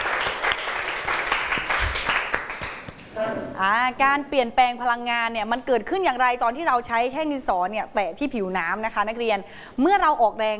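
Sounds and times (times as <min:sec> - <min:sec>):
classroom applause: 0:00.0 - 0:02.9
speech: 0:03.6 - 0:10.5.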